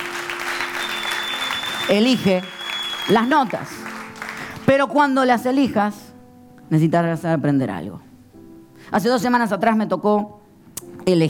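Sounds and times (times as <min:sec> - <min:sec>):
audience applause: 0:00.0 - 0:04.7
speech: 0:01.9 - 0:03.9, 0:04.7 - 0:06.0, 0:06.7 - 0:08.1, 0:08.9 - 0:10.4, 0:11.1 - 0:11.2.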